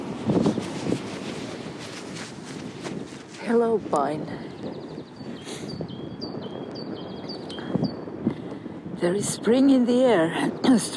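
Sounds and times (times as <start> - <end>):
wind in a park: 0.0 - 10.9
speech: 3.5 - 4.8, 9.0 - 10.9
bird chirping in windy park: 4.5 - 8.1.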